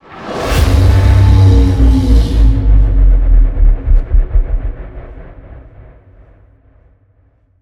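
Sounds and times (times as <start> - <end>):
modulated stinger: 0.6 - 6.3.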